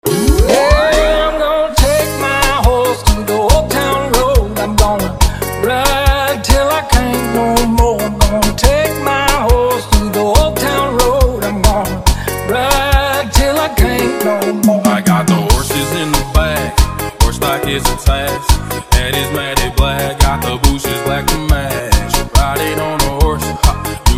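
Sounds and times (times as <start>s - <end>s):
car sound system reggae and bregadeira music: 0.0s - 24.1s.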